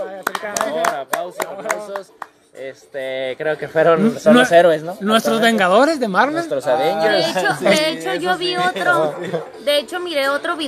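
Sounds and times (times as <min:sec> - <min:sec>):
scattered hand claps: 0:00.2 - 0:02.4
speech: 0:00.4 - 0:10.6
laughter: 0:07.2 - 0:09.7.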